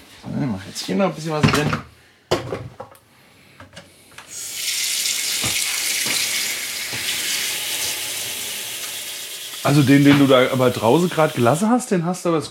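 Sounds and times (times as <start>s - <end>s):
speech: 0.5s - 2.8s, 9.7s - 12.4s
water running from a tap: 4.3s - 11.7s
clunks and knocks from handling the faucet: 8.8s - 10.7s.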